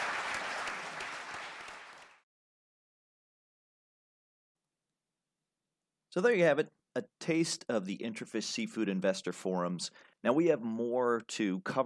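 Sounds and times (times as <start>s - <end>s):
audience applause for panelists: 0.0s - 2.2s
speech: 6.1s - 11.8s.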